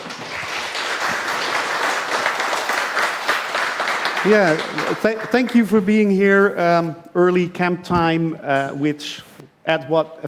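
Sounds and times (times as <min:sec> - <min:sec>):
audience applause: 0:00.0 - 0:05.7
speech: 0:04.2 - 0:10.2.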